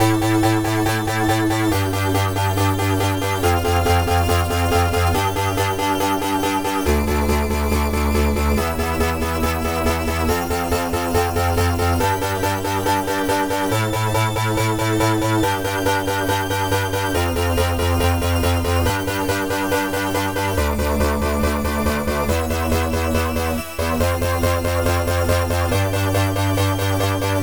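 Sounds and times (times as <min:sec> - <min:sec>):
music loop at 140 BPM in A: 0:00.0 - 0:27.4.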